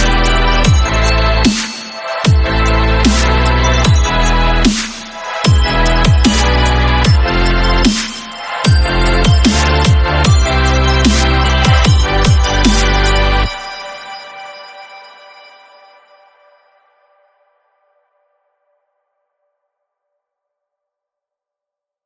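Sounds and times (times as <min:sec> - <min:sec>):
melodic dubstep music: 0:00.0 - 0:15.5.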